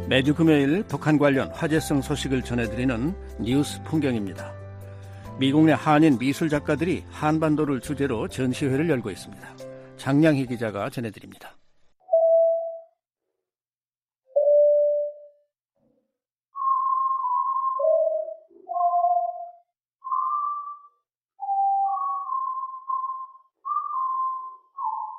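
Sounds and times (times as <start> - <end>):
speech: 0.1 - 4.6, 5.4 - 11.6
high-pitched electronic tones from propaganda broadcast: 12.0 - 13.0, 14.3 - 15.4, 16.5 - 25.1.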